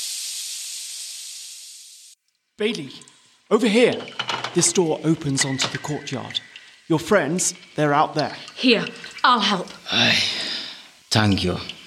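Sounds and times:
air hissing from punctured tyres: 0.0s - 2.2s
speech: 2.6s - 10.4s, 11.1s - 11.8s.

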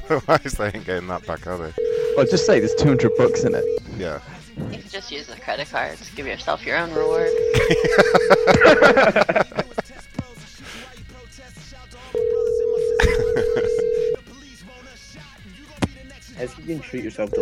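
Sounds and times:
speech: 0.1s - 9.6s, 16.7s - 17.3s
telephone ringback tones as a call rings through to voicemail: 1.8s - 3.8s, 6.9s - 8.9s, 12.2s - 14.2s
laughter: 7.5s - 10.8s, 13.0s - 14.2s.

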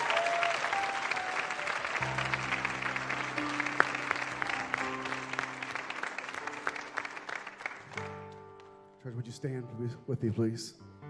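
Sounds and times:
audience clapping: 0.0s - 8.8s
speech: 9.1s - 10.9s.

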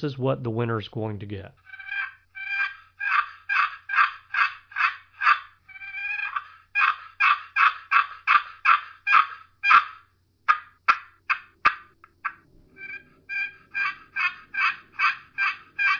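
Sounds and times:
speech: 0.0s - 1.7s
wooden turkey box call being played: 1.7s - 15.9s.

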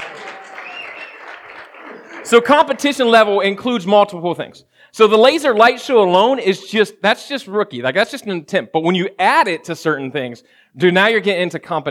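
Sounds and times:
audience applause: 0.0s - 3.1s
speech: 2.3s - 11.9s.

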